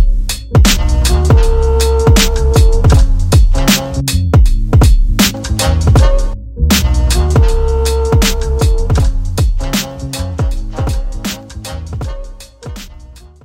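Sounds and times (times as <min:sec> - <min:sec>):
kick drums: 0:00.0 - 0:05.3, 0:05.9 - 0:06.4, 0:08.2 - 0:09.7, 0:10.4 - 0:11.4, 0:12.0 - 0:13.4
snare drums: 0:00.0 - 0:13.4.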